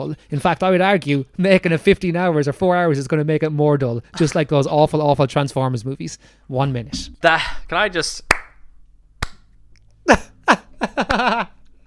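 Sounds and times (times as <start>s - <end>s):
speech: 0.0s - 8.3s, 10.1s - 11.6s
slow hand claps: 8.3s - 8.6s, 9.2s - 9.5s, 11.0s - 11.4s.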